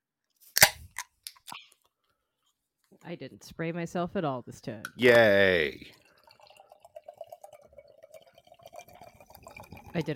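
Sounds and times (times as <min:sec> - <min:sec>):
cider can cracking open with pop and hiss: 0:00.5 - 0:01.6
speech: 0:03.0 - 0:06.0, 0:10.0 - 0:10.1.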